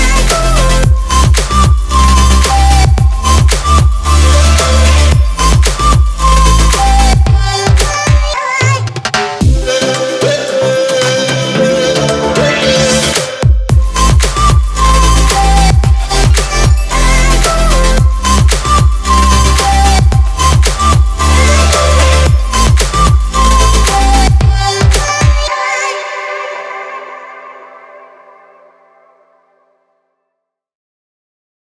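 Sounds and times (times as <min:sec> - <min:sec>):
organic percussion: 0:00.0 - 0:08.3, 0:08.9 - 0:25.5.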